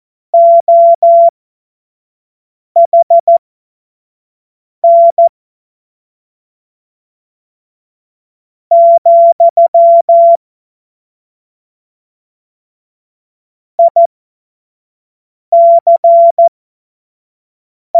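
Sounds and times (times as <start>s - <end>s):
CW Morse code beeps: 0.4s - 1.3s, 2.8s - 3.4s, 4.8s - 5.3s, 8.7s - 10.4s, 13.8s - 14.1s, 15.6s - 16.5s.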